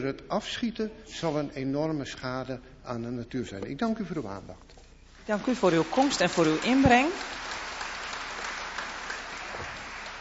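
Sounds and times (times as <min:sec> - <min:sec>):
speech: 0:00.0 - 0:07.4
audience clapping: 0:05.4 - 0:10.1.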